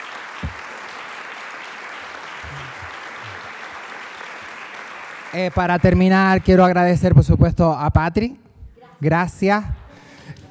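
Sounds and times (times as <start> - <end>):
audience applause: 0.0 - 6.5
speech: 5.3 - 8.4, 9.0 - 9.8.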